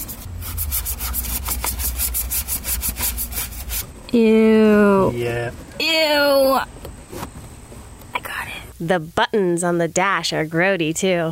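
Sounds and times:
small brush scrubbing inside a car air vent: 0.0 - 4.0
low hum: 0.0 - 9.0
speech: 4.1 - 6.8, 8.8 - 11.2.

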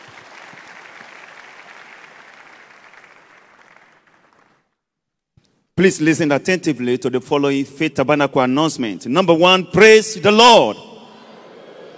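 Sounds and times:
church congregation applauding during a Sunday service: 0.0 - 4.8
speech: 5.8 - 10.9.

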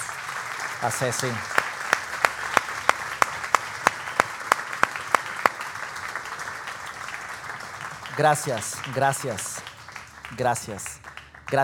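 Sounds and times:
audience applause: 0.0 - 11.6
speech: 0.8 - 1.5, 8.2 - 9.6, 10.3 - 11.6.

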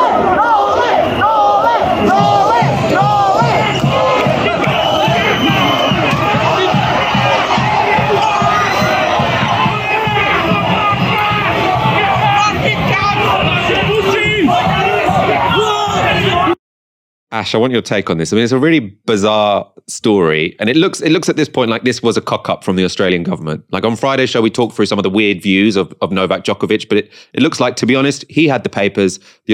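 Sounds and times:
jubilant crowd cheering and chanting: 0.0 - 16.6
speech: 17.4 - 29.5.

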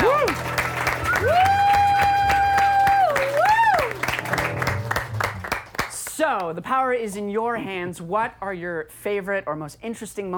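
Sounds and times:
audience applause and cheering for the band: 0.0 - 6.1
speech: 6.4 - 10.3.

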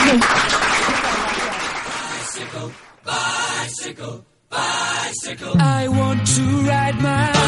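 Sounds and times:
audience applause: 0.0 - 3.0
speech: 3.9 - 7.3.

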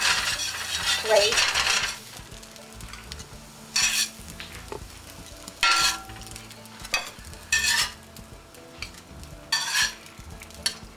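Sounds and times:
utensil scraping and clattering: 0.0 - 2.0, 3.7 - 4.6, 5.6 - 6.3, 6.9 - 8.0, 8.8 - 10.9
eggplant slices sizzling in frying oil: 0.0 - 10.9
speech: 1.0 - 1.6.

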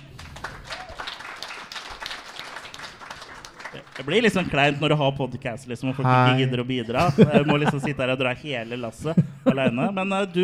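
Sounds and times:
audience clapping: 0.0 - 5.1
laughter: 3.3 - 5.0, 6.1 - 10.4
speech: 3.7 - 10.4.

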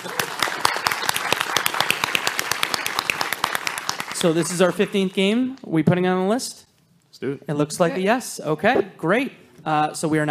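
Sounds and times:
audience applause: 0.0 - 5.2
speech: 4.2 - 10.3.

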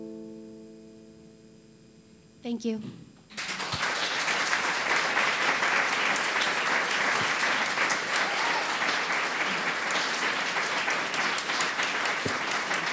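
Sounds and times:
speech: 2.5 - 3.0
crowd applauding: 3.3 - 12.9
cheering: 3.4 - 12.9.

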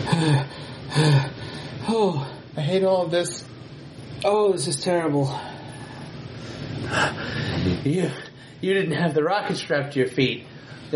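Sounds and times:
person gasping winded after skating: 0.0 - 2.4, 6.5 - 7.8
speech: 0.1 - 3.5, 4.2 - 5.5, 6.4 - 10.9.

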